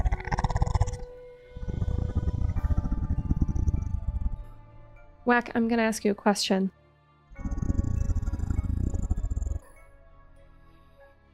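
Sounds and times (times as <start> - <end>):
deep rumbling animal growl: 0.0 - 5.1, 7.3 - 9.8
speech: 5.3 - 6.8.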